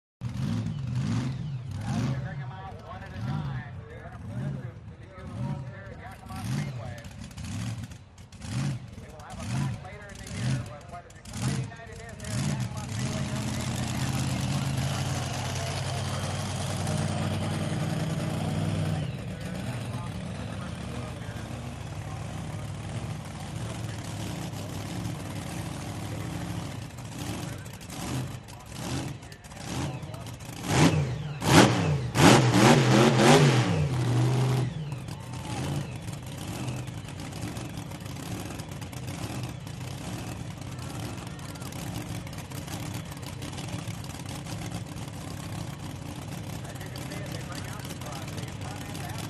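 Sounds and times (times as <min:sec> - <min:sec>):
monster truck starting up, idling, revving and driving away: 0:00.2 - 0:49.2
crowd cheering: 0:13.3 - 0:23.1, 0:34.9 - 0:36.6.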